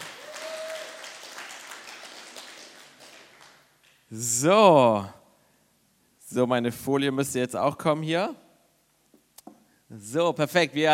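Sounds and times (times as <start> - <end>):
audience applause: 0.0 - 3.6
speech: 4.1 - 5.2, 6.3 - 8.4, 9.9 - 10.9.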